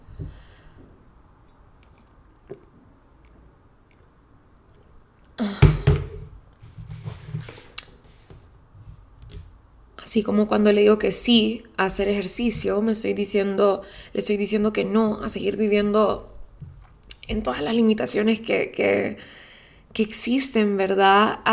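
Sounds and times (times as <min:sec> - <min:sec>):
drinking water from a glass: 0:00.8 - 0:05.8
speech: 0:10.1 - 0:16.3, 0:17.3 - 0:21.5.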